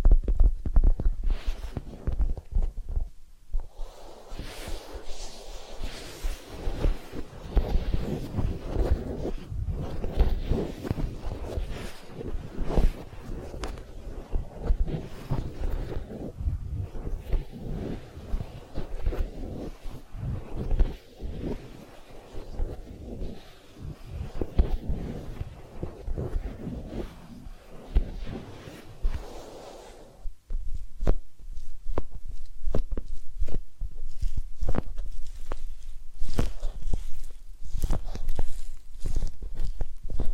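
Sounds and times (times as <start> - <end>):
massage and ear cleaning rubbing and scratching: 0.0 - 40.3
crisp clicking strokes: 0.3 - 40.3
soft brushing: 0.8 - 40.3.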